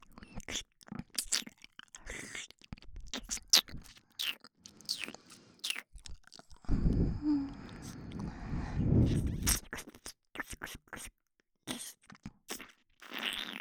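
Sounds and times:
ear licking recorded with a binaural microphone: 0:00.4 - 0:06.9, 0:09.1 - 0:11.1, 0:11.7 - 0:13.5.

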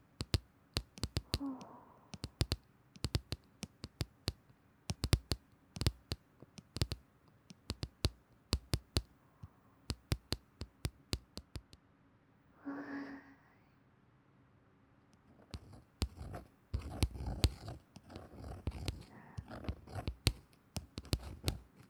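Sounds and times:
soothing tapping for the ears: 0:00.0 - 0:09.1, 0:09.9 - 0:11.8, 0:15.5 - 0:21.8.

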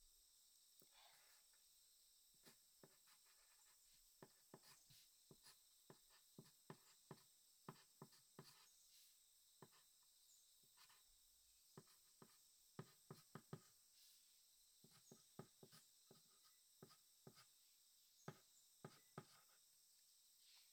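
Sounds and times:
diary writing sounds: 0:02.4 - 0:10.0, 0:10.8 - 0:11.1, 0:11.7 - 0:14.2, 0:14.8 - 0:17.6, 0:18.2 - 0:19.6.

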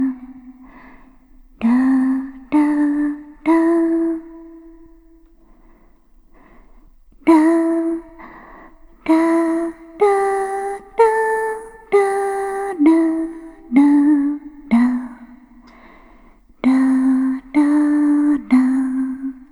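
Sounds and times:
lullaby with reverb: 0:01.6 - 0:05.2, 0:07.2 - 0:15.6, 0:16.6 - 0:19.5.

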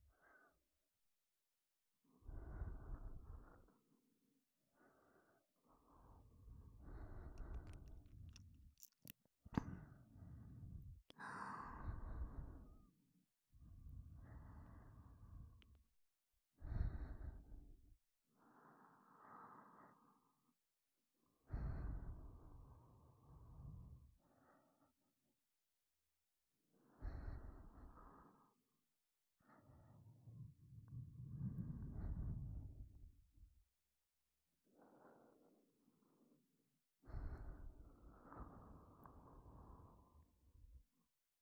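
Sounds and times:
breathing in both ears: 0:00.1 - 0:00.6, 0:02.2 - 0:04.0, 0:04.7 - 0:12.9, 0:13.6 - 0:15.8, 0:16.6 - 0:17.8, 0:18.4 - 0:20.5, 0:21.4 - 0:25.0, 0:26.8 - 0:28.7, 0:29.4 - 0:33.0, 0:34.7 - 0:36.4, 0:37.0 - 0:40.8.

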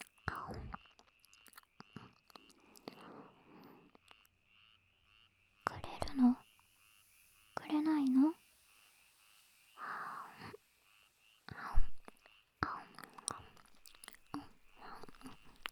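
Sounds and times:
person breathing softly while lying beside the listener: 0:02.5 - 0:04.1, 0:05.7 - 0:10.8, 0:11.4 - 0:15.7.

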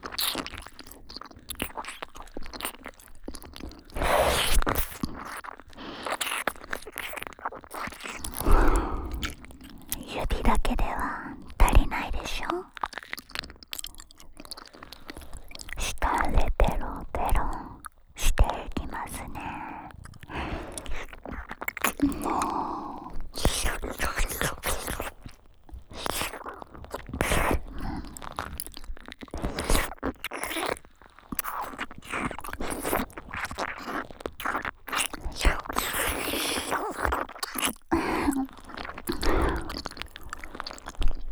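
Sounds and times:
licking deep in the ear: 0:00.0 - 0:41.2
person whispering by the ear: 0:09.9 - 0:12.8, 0:15.8 - 0:19.9, 0:22.0 - 0:25.1.

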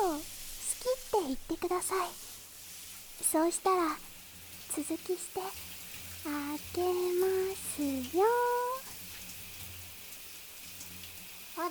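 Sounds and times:
shower running water: 0:00.0 - 0:11.6
speech: 0:01.2 - 0:02.2, 0:03.2 - 0:04.1, 0:04.8 - 0:08.8.

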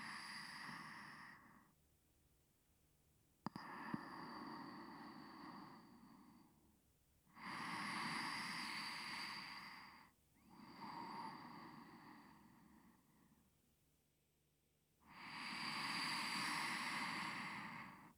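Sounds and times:
person breathing in sleep on left side: 0:00.0 - 0:01.7, 0:03.5 - 0:06.6, 0:07.4 - 0:13.4, 0:15.1 - 0:18.1.

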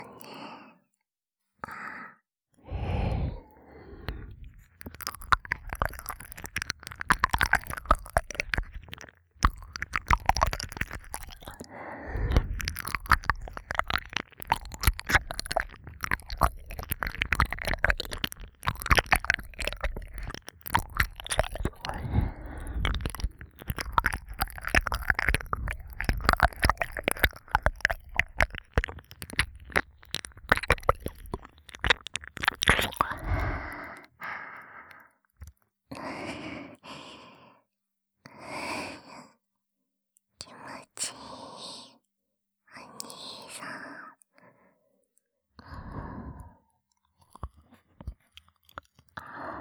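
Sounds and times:
ASMR ear licking sounds: 0:02.7 - 0:34.3, 0:47.2 - 0:49.5.

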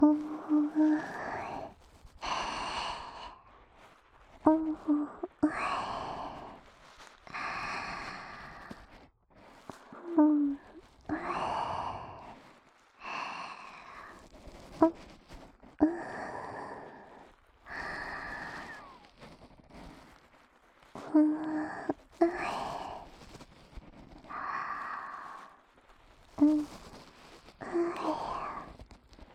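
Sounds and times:
baby powder massage in the left ear: 0:00.0 - 0:29.3.

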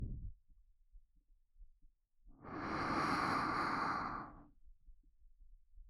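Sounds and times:
gentle ASMR blowing into the right ear: 0:02.5 - 0:04.3.

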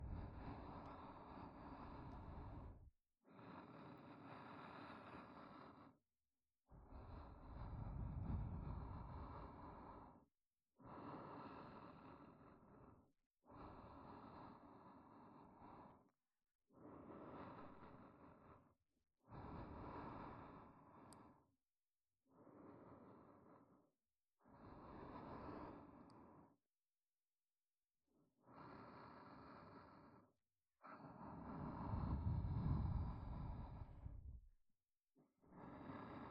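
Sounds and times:
soft breathing loop in the right ear: 0:00.0 - 0:06.0, 0:06.8 - 0:21.5, 0:22.3 - 0:26.6, 0:28.4 - 0:34.6, 0:35.4 - 0:36.2.

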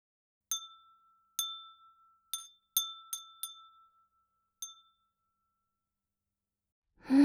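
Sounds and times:
glass wind chime ringing: 0:00.5 - 0:05.9.

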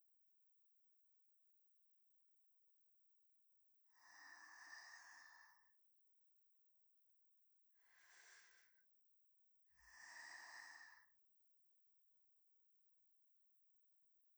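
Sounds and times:
person breathing in sleep in the left channel: 0:03.9 - 0:05.7, 0:07.8 - 0:08.8, 0:09.8 - 0:11.1.

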